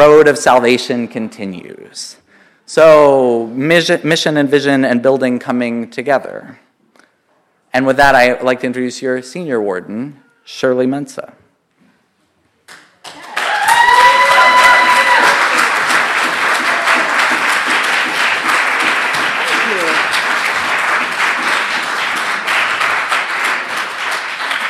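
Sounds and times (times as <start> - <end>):
speech: 0.0 - 6.6, 7.7 - 11.4
people whooping and calling out: 13.1 - 17.8, 19.3 - 20.4
audience applause: 13.1 - 24.6.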